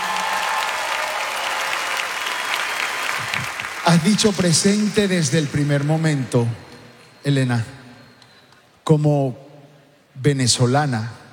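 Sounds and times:
audience applause: 0.0 - 6.0
speech: 3.9 - 7.8, 8.9 - 9.4, 10.2 - 11.2.

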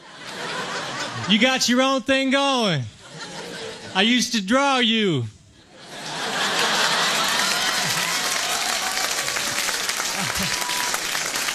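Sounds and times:
laughter: 0.0 - 1.8, 2.9 - 4.2, 5.6 - 11.5
speech: 1.3 - 3.3, 3.9 - 5.4
audience applause: 6.0 - 11.5
faint cheering: 6.9 - 11.5.

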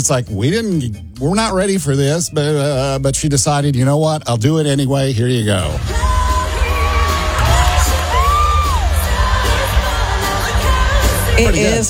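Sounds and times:
speech: 0.0 - 6.1, 11.4 - 11.8
concert audience singing along with a Christmas song: 5.8 - 11.8
crowd shouts and whoops: 6.2 - 10.5.

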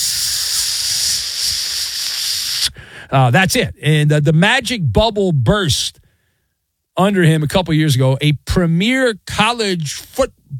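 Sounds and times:
food searing on a hot grill: 0.0 - 2.7
speech: 3.0 - 6.0, 7.0 - 10.5.

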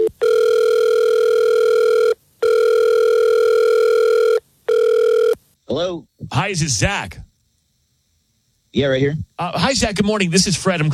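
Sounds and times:
telephone call ringing out: 0.0 - 5.4
speech: 6.5 - 7.2, 8.7 - 10.9.

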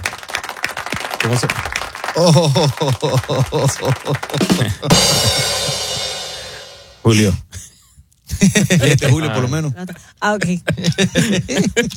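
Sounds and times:
audience applause: 0.0 - 5.4
speech: 1.2 - 5.7, 7.1 - 7.5, 8.4 - 11.9
laughter: 2.0 - 6.7, 8.3 - 11.9.

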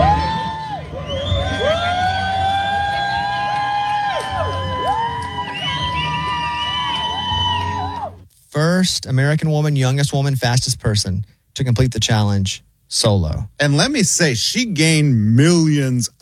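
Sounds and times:
people cheering at the finish line: 0.0 - 8.2
speech: 8.8 - 16.2.

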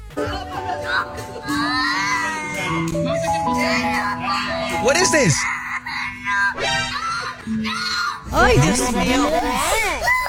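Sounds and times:
children shrieking and wailing in fright: 1.0 - 8.3
speech: 4.8 - 5.6, 7.5 - 9.9.

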